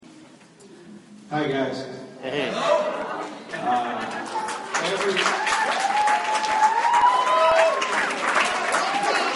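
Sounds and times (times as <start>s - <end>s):
speech: 1.3s - 4.2s, 4.8s - 7.1s
audience applause: 3.7s - 9.3s.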